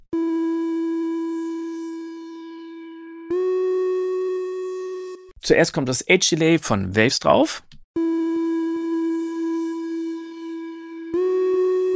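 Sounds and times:
dry synthesizer tone without effects: 0:00.0 - 0:05.3, 0:08.0 - 0:11.9
speech: 0:05.4 - 0:07.8.

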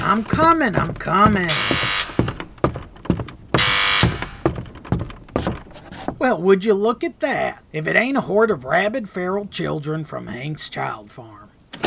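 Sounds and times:
loud thumping knocks on a door: 0:00.0 - 0:06.2
speech: 0:00.1 - 0:01.9, 0:06.2 - 0:11.4
harsh electric doorbell buzzing: 0:01.5 - 0:02.3, 0:03.6 - 0:04.4.

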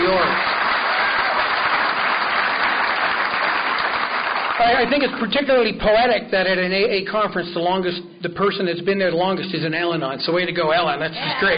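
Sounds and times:
crowd applause: 0:00.0 - 0:05.2
speech: 0:04.6 - 0:11.5.

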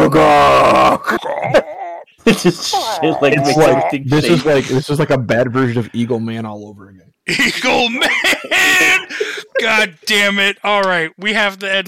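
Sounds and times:
voice imitating a low rooster-like T-Rex call: 0:00.0 - 0:02.1, 0:02.8 - 0:04.6
speech: 0:01.0 - 0:11.8
laughter: 0:02.2 - 0:04.8, 0:07.3 - 0:10.1.

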